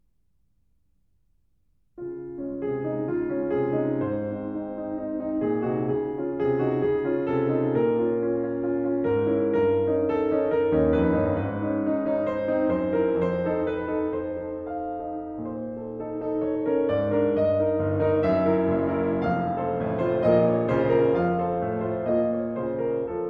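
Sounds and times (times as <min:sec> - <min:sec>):
small piano piece allegretto con moto: 0:02.0 - 0:23.2.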